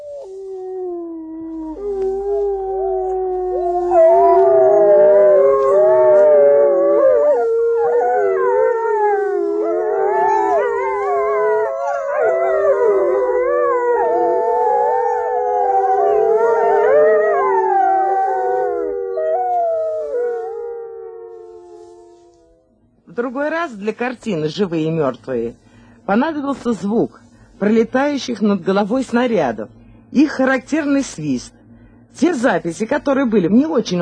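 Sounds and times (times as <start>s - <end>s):
wolves howling: 0.0s - 22.8s
speech: 23.8s - 33.9s.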